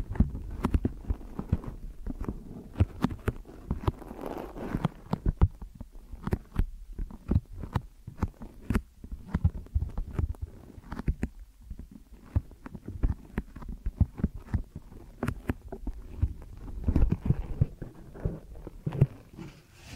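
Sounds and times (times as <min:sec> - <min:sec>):
deep ear massage taps and rubbing thuds: 0:00.0 - 0:19.9.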